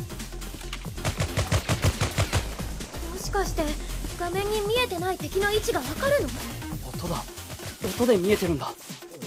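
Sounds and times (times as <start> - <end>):
video game gunfire: 0.9 - 2.8
speech: 3.4 - 7.3, 7.9 - 8.8.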